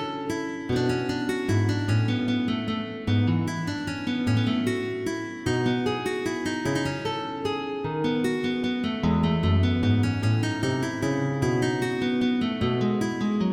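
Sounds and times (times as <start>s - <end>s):
MIDI guitar minuet: 0.0s - 13.5s.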